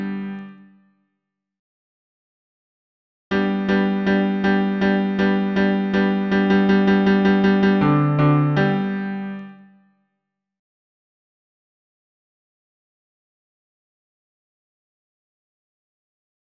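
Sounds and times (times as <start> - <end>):
piano bass accompaniment: 3.3 - 9.4.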